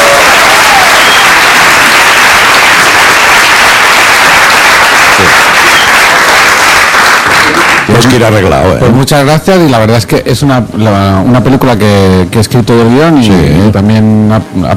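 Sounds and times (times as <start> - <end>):
audience applause: 0.0 - 8.2
speech: 8.0 - 14.7.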